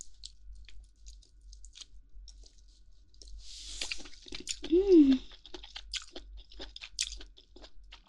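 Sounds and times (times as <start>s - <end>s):
crunchy meat being chewed: 0.0s - 8.0s
short hummed vocal sound: 4.7s - 5.3s.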